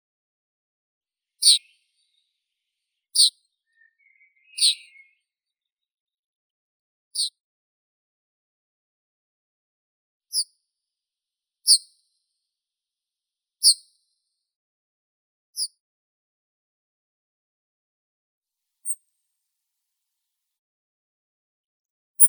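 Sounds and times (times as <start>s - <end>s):
yellowhammer Emberiza citrinella singing: 1.4s - 2.2s, 3.2s - 5.4s.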